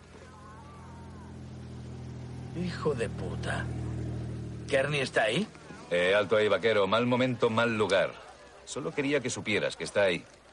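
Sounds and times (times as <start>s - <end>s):
motorcycle pulling up beside a parked car outside a house: 0.0s - 7.4s
speech: 2.6s - 3.9s, 4.7s - 10.4s.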